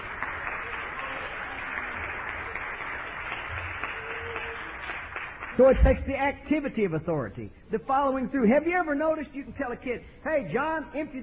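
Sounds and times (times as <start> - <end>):
audience clapping hands: 0.0 - 6.9
speech: 5.6 - 11.2.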